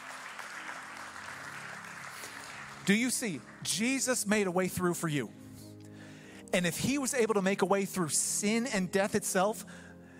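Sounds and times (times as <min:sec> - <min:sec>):
audience clapping: 0:00.0 - 0:04.4
speech: 0:02.9 - 0:05.4, 0:06.5 - 0:09.9.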